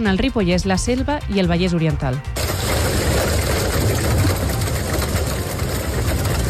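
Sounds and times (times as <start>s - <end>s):
speech: 0.0s - 2.5s
heavy rain pouring in a storm: 2.4s - 6.4s
wind rumbling in a storm: 2.4s - 6.4s.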